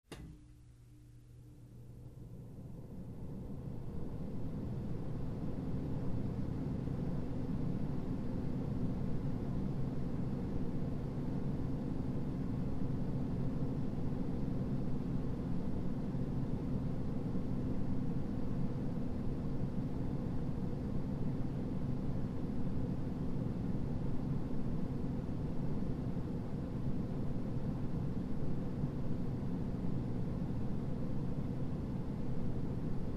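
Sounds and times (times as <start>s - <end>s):
air conditioner vent with smooth mid-range rush of air: 0.0s - 33.1s.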